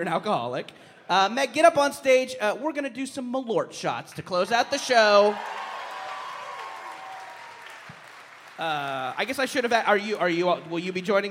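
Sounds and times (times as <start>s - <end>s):
speech: 0.0s - 5.7s, 8.6s - 11.2s
audience applause: 4.5s - 11.2s.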